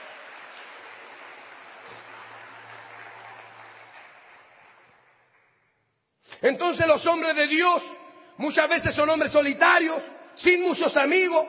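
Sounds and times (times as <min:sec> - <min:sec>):
audience clapping in praise: 0:00.0 - 0:06.2
speech: 0:06.4 - 0:11.4.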